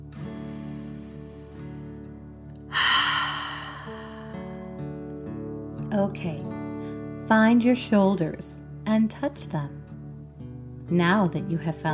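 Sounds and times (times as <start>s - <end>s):
soft sustained music: 0.0s - 11.9s
person breathing during a guided movement exercise: 2.7s - 4.7s
speech: 6.0s - 6.6s, 7.3s - 9.8s, 10.9s - 11.9s.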